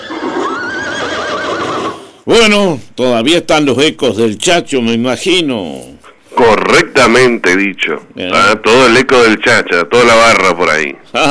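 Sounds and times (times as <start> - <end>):
horse neighing: 0.0 - 2.3
speech: 2.3 - 11.2.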